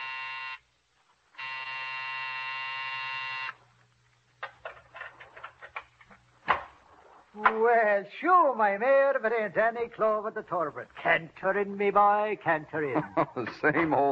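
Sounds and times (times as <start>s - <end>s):
building night buzzer growling: 0.0s - 0.6s, 1.4s - 3.6s
speech: 7.4s - 14.1s
laughter: 12.8s - 14.1s.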